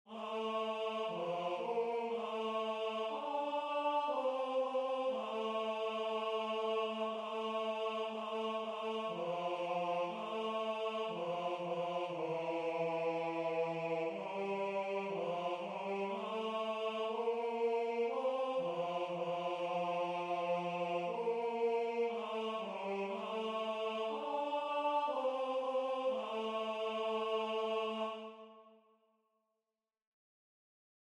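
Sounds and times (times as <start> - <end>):
tenor singing: 0.1 - 28.5.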